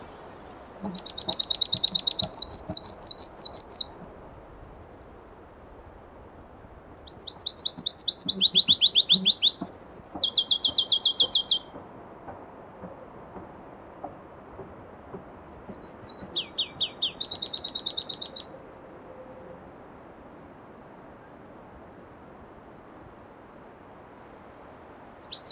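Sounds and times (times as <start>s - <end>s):
Pallas's leaf warbler song: 0.0s - 4.0s, 7.0s - 11.8s, 15.1s - 18.6s, 24.8s - 25.5s.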